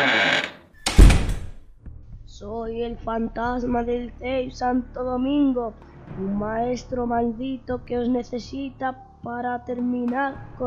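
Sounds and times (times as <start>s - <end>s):
door slamming shut: 0.2s - 1.7s
speech: 2.9s - 10.6s.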